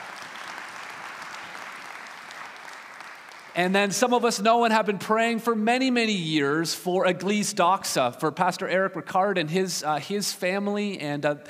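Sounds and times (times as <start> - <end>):
audience applause: 0.0 - 3.8
speech: 3.6 - 11.4.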